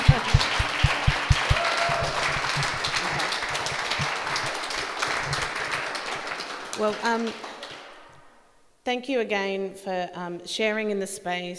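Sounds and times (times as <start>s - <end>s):
audience applause: 0.0s - 8.1s
speech: 6.8s - 7.5s, 8.8s - 11.5s.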